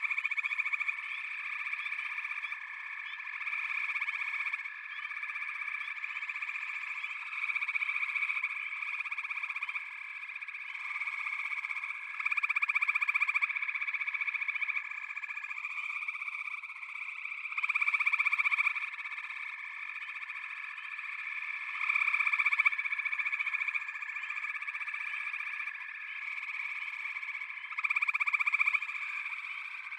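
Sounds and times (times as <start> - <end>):
frog chorus trilling: 0.0 - 29.9.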